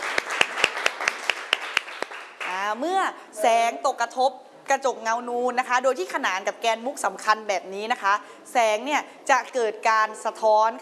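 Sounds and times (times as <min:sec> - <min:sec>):
class of students clapping hands in a classroom: 0:00.0 - 0:02.6
speech: 0:02.7 - 0:10.8.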